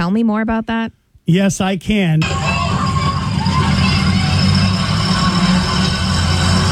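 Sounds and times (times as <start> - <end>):
speech: 0.0 - 2.5
mosquito spray truck engine rumble: 2.2 - 6.6.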